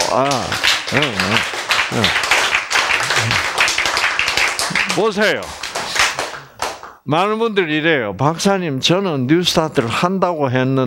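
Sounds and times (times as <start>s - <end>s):
audience clapping: 0.0s - 7.0s
speech: 0.1s - 2.3s, 5.0s - 5.7s, 7.1s - 10.8s.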